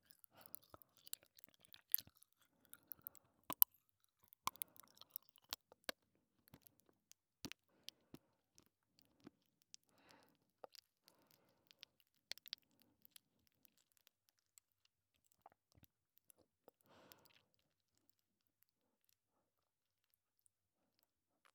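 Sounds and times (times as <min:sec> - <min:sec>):
popping candy crackling while being chewed: 0:00.0 - 0:06.0
soft wet chewing: 0:00.0 - 0:19.2.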